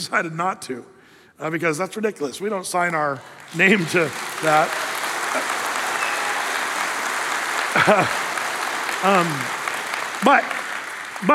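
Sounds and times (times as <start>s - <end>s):
speech: 0.0s - 4.9s, 7.8s - 8.2s, 9.0s - 9.6s, 10.2s - 10.6s, 11.2s - 11.3s
audience applause: 3.1s - 11.3s
laughter: 3.6s - 6.8s, 7.4s - 10.6s.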